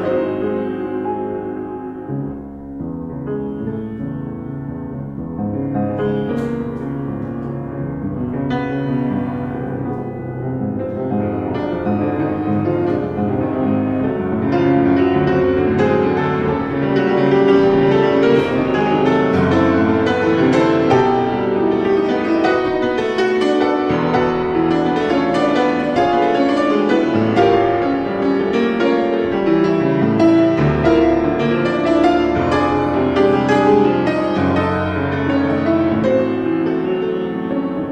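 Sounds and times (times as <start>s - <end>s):
piano: 0.0s - 37.9s.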